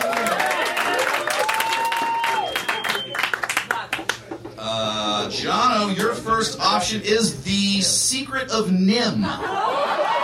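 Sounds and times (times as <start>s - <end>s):
whoops and cheers: 0.0s - 3.1s
audience clapping: 0.0s - 4.3s
speech: 5.4s - 9.8s
laughter: 9.1s - 10.2s.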